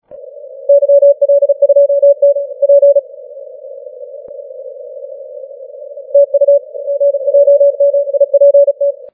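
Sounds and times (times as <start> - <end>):
CW morse code on the 30 metre band: 0.7 - 3.0, 6.0 - 9.1.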